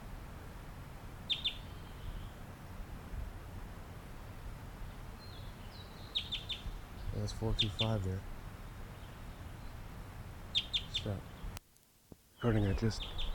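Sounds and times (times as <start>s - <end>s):
steady low rumbling hiss: 0.0s - 13.3s
high thin bird chirps: 1.3s - 2.4s, 4.8s - 9.8s, 10.5s - 11.6s, 12.3s - 13.3s
speech: 7.2s - 8.3s, 11.0s - 11.3s, 12.4s - 13.3s.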